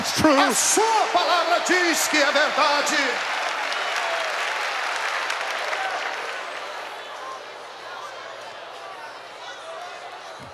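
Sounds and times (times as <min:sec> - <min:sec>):
audience applauding: 0:00.0 - 0:07.6
speech: 0:00.2 - 0:03.4.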